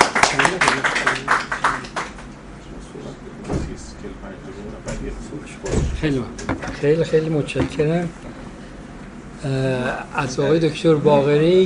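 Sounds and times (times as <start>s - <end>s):
audience applause: 0.0s - 2.3s
speech: 6.0s - 8.2s, 9.4s - 11.6s.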